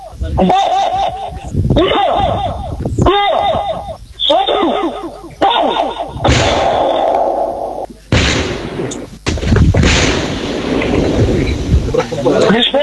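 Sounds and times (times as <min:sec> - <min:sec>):
speech: 0:00.2 - 0:00.9, 0:01.8 - 0:05.9
laughter: 0:00.2 - 0:07.4, 0:11.9 - 0:12.8
controlled detonation of leftover World War II explosives in Papua: 0:06.1 - 0:07.5, 0:08.1 - 0:12.3.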